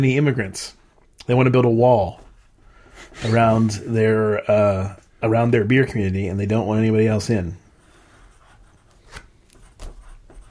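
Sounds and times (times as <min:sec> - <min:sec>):
speech: 0:00.0 - 0:02.2, 0:03.0 - 0:07.6
pen jotting notes by hand: 0:08.0 - 0:10.4.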